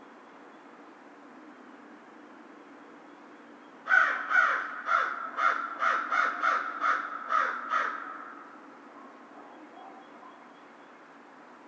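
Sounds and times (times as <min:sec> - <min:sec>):
American crow cawing: 0:03.9 - 0:08.6.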